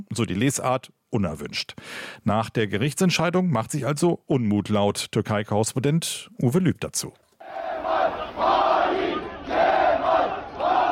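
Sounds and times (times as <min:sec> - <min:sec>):
speech: 0:00.0 - 0:07.2
CHP supporters chanting a slogan outside party headquarters in Ankara: 0:07.4 - 0:10.8.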